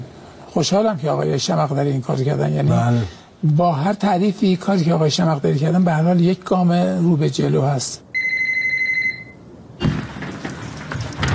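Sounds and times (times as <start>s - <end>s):
speech: 0.6s - 8.0s
telephone ringing: 8.2s - 9.4s
rustling and clattering: 9.8s - 11.3s
thump: 9.8s - 11.3s.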